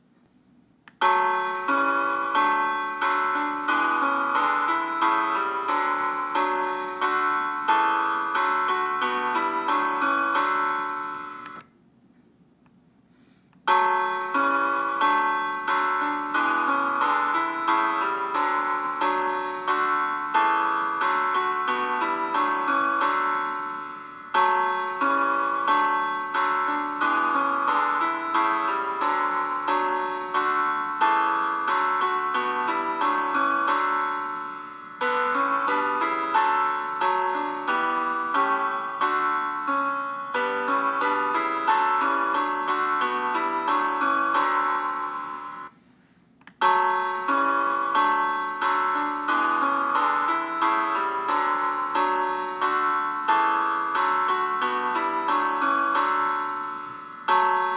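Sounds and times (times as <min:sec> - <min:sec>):
solo piano carol: 0:00.9 - 0:11.6, 0:13.2 - 0:45.7, 0:46.5 - 0:57.7.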